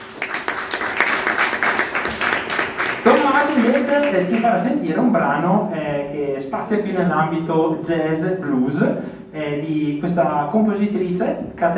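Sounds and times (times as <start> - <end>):
audience applause: 0.0 - 4.6
speech: 3.9 - 11.7.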